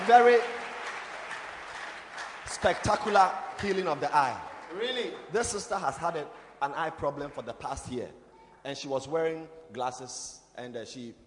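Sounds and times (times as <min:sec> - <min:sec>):
audience clapping: 0:00.0 - 0:06.9
speech: 0:00.1 - 0:00.6, 0:02.5 - 0:11.2.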